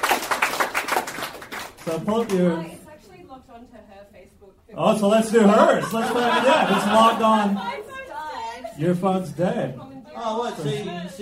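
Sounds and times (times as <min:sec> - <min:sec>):
applause for an audience member at a live show: 0:00.0 - 0:02.5
speech: 0:01.8 - 0:02.8, 0:03.6 - 0:07.9, 0:08.8 - 0:11.1
laughter: 0:05.3 - 0:09.0.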